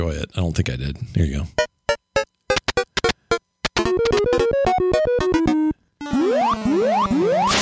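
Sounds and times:
speech: 0.0s - 1.6s
chiptune arcade game sound effects: 1.9s - 7.5s.

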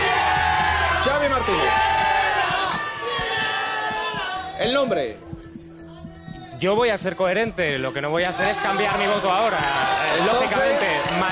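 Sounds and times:
studio audience shouting: 0.0s - 4.6s, 8.2s - 11.3s
speech: 1.0s - 2.0s, 4.6s - 5.3s, 6.6s - 11.3s.

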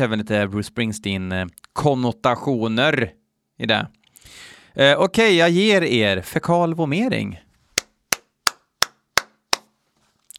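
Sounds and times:
speech: 0.0s - 7.4s
single person clapping: 7.8s - 9.8s.

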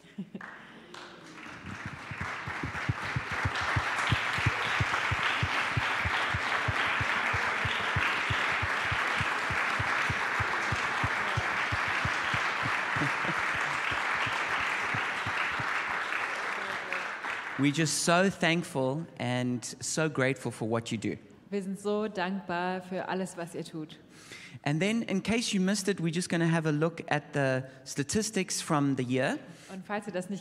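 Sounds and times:
laughter: 0.0s - 15.9s
audience applause: 0.4s - 17.9s
speech: 17.6s - 30.3s.

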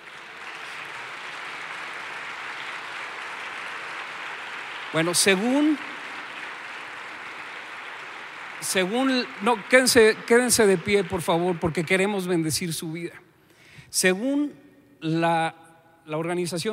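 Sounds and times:
audience applause: 0.0s - 12.7s
speech: 4.9s - 5.9s, 8.7s - 13.3s, 13.9s - 16.7s.

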